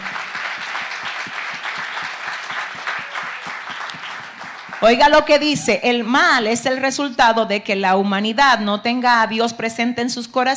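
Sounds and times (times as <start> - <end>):
loud applause: 0.0 - 5.3
speech: 4.8 - 10.5.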